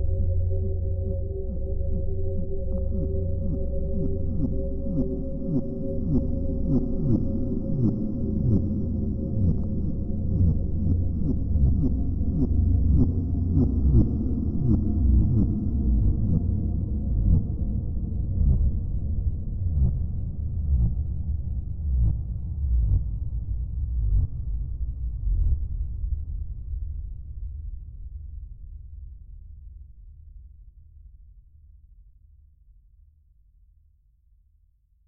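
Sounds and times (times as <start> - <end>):
dark ambient melody: 0.0 - 26.7.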